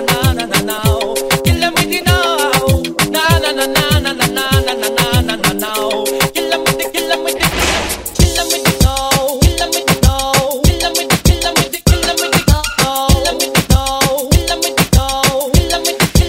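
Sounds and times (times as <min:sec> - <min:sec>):
dancehall music snippets: 0:00.0 - 0:16.2.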